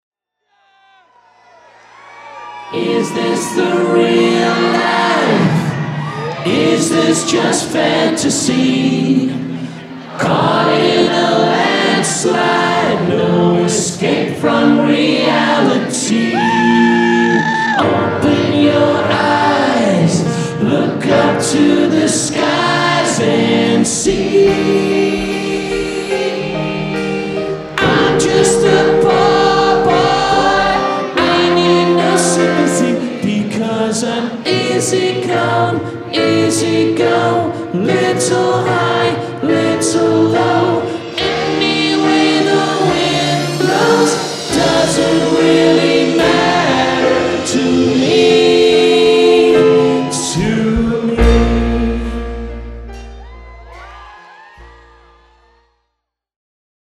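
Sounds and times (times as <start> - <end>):
live music intro: 1.9 - 55.6.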